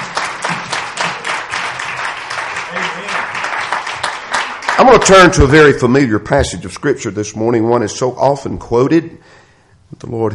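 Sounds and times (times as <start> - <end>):
audience applause: 0.0 - 5.4
speech: 4.8 - 9.4, 10.0 - 10.3.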